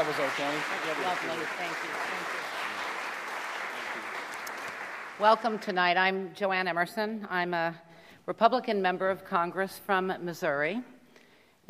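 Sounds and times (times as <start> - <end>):
speech: 0.0 - 2.6, 5.2 - 10.9
audience applause welcoming two members of Congress onto a stage: 0.0 - 5.6.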